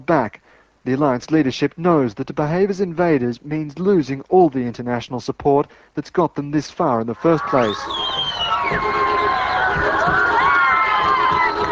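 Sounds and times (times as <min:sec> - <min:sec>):
speech: 0:00.0 - 0:09.9
crowd of Afghans cheering and shouting the end of a hated regime: 0:07.2 - 0:11.6.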